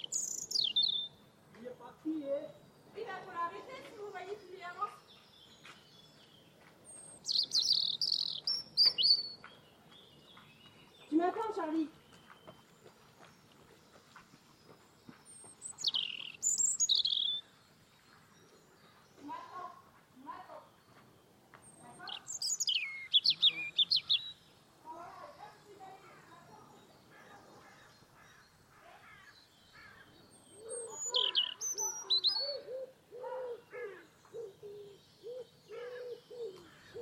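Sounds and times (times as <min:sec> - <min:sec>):
European robin singing: 0:00.0 - 0:37.0.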